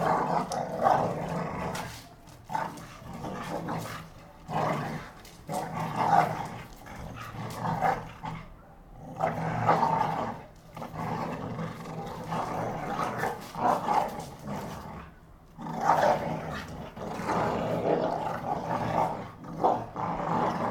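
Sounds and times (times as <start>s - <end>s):
pit bull dogs fighting: 0.0s - 20.6s.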